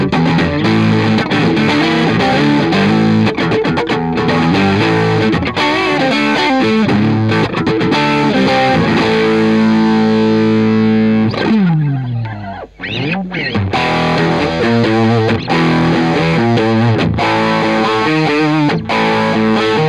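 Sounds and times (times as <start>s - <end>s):
electric guitar with volume swells: 0.0s - 19.8s.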